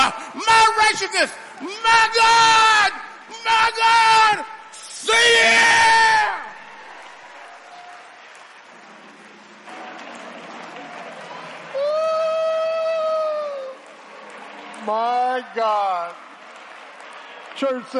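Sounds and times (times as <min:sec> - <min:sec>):
speech: 0:00.7 - 0:06.4, 0:14.9 - 0:16.2, 0:17.6 - 0:17.9
audience applause: 0:05.5 - 0:17.9.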